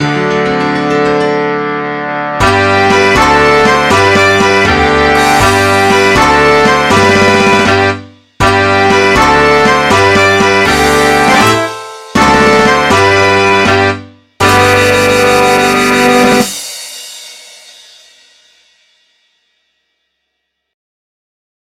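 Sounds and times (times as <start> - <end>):
instrumental nursery tune: 0.0 - 18.0.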